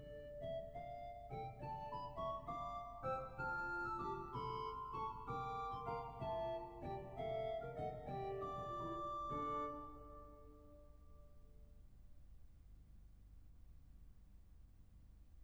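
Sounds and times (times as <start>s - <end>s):
organ playing: 0.0s - 10.9s.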